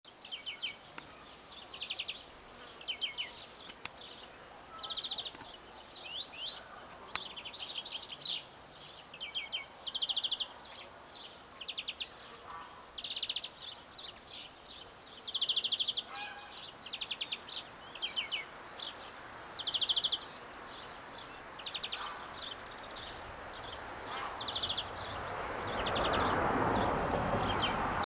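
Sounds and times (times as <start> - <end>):
background hiss: 0.1 - 28.0
European greenfinch trilling: 15.7 - 16.6.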